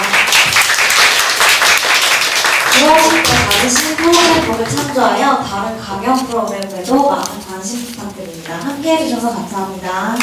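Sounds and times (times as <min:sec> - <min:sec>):
audience applause for speaker: 0:00.0 - 0:04.8
speech: 0:02.8 - 0:10.2.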